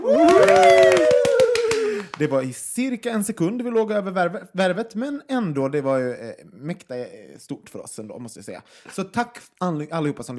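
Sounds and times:
applause: 0.0s - 2.4s
speech: 2.2s - 10.3s.

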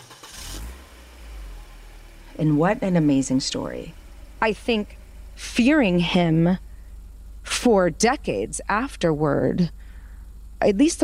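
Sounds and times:
rental car engine starting: 0.0s - 11.0s
speech: 2.4s - 6.7s, 7.6s - 9.8s, 10.6s - 11.0s.

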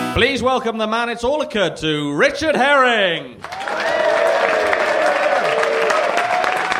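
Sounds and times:
speech: 0.2s - 4.0s
comedy audience applause for comedian Richard Herring: 3.4s - 6.7s.

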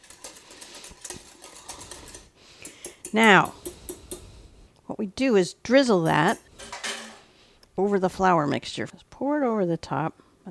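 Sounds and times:
whisk whisking liquid ingredients in a bowl: 0.0s - 4.2s
speech: 3.1s - 3.6s, 5.0s - 6.4s, 7.8s - 10.4s.

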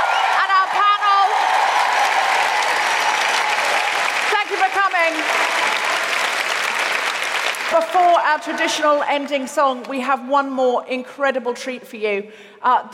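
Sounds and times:
shouted cheers: 0.0s - 7.1s
audience applause: 0.0s - 8.2s
speech: 7.7s - 12.9s.

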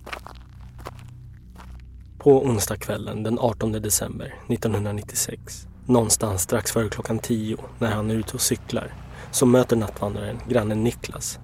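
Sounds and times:
footsteps walking: 0.0s - 2.2s
steady low hum: 0.0s - 11.4s
speech: 2.2s - 11.4s.

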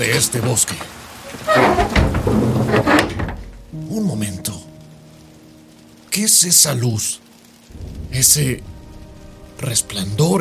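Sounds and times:
speech: 0.0s - 2.9s, 3.8s - 4.7s, 6.2s - 7.2s, 8.1s - 8.8s, 9.6s - 10.4s
thunderstorm: 7.7s - 10.4s.

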